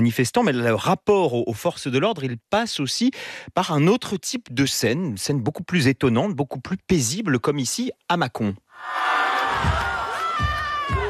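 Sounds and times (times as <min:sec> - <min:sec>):
speech: 0:00.0 - 0:09.0
dozens of high school students cheering and applauding: 0:08.8 - 0:11.0.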